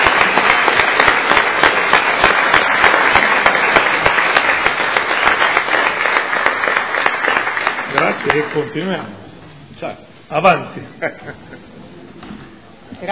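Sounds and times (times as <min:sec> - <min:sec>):
crowd applause: 0:00.0 - 0:08.9
speech: 0:08.2 - 0:11.8
laughter: 0:10.8 - 0:11.9.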